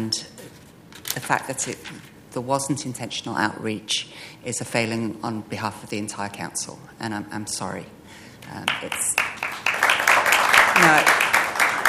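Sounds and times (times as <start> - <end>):
speech: 1.2 - 9.3, 10.8 - 11.2
audience applause: 8.7 - 11.8.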